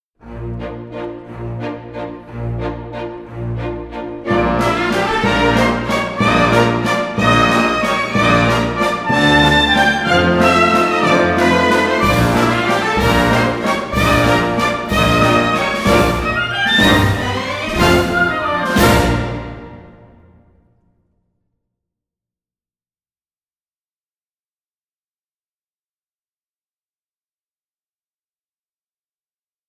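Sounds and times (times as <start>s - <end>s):
solo instrumental piece: 0.2s - 20.4s.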